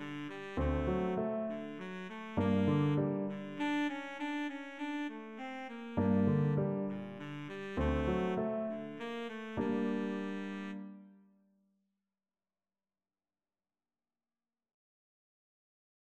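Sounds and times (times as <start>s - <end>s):
baritone saxophone melody: 0.0s - 11.1s.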